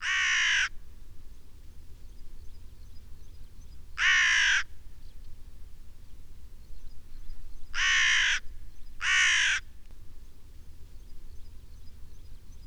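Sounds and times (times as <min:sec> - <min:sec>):
crow: 0:00.0 - 0:00.8, 0:04.0 - 0:04.7, 0:07.8 - 0:09.7.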